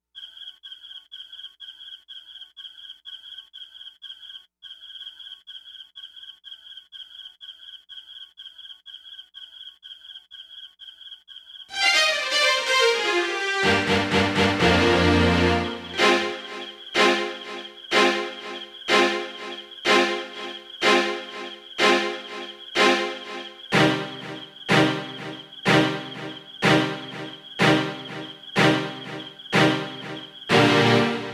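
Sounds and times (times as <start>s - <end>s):
violins playing outside: 11.7s - 31.3s.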